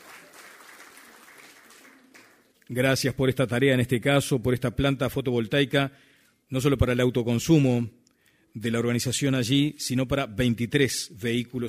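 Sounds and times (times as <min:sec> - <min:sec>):
crowd applause: 0:00.0 - 0:02.5
speech: 0:02.7 - 0:11.6.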